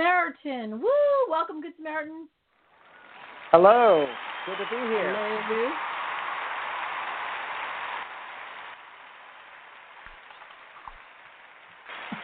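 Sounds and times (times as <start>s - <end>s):
speech: 0.4s - 2.4s, 3.5s - 5.9s
applause: 2.9s - 12.2s.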